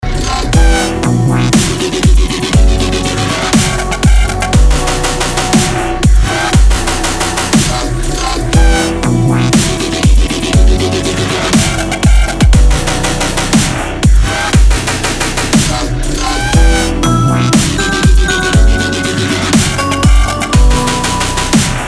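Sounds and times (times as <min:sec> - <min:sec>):
dubstep music: 0:00.0 - 0:21.8.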